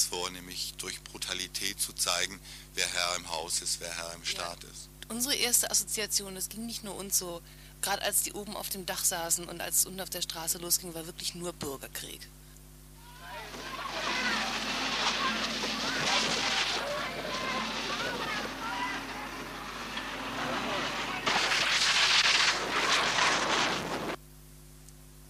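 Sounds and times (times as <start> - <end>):
speech: 0.1 - 12.4
police water cannon spraying: 13.2 - 24.2.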